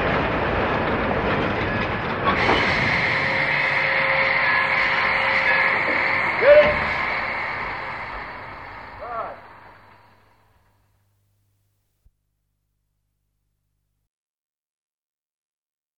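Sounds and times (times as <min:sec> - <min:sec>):
steam train passing a level crossing: 0:00.0 - 0:11.0.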